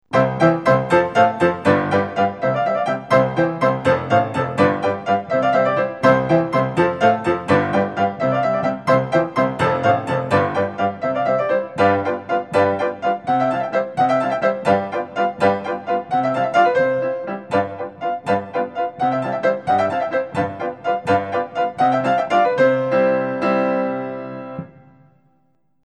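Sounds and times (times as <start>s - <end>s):
waltz in C major: 0.1s - 25.4s.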